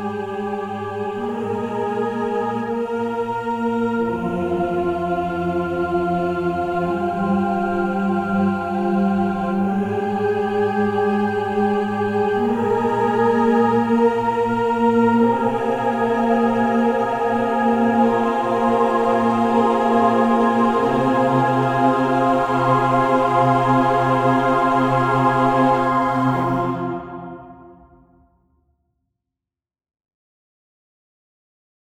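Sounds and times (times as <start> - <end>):
choirs singing: 0.0 - 28.2.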